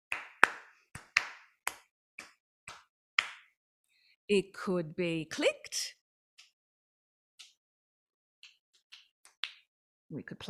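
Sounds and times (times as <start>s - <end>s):
hand claps beating out a short rhythmic pattern: 0.0s - 3.6s, 8.4s - 9.7s
speech: 4.3s - 6.0s, 10.1s - 10.4s.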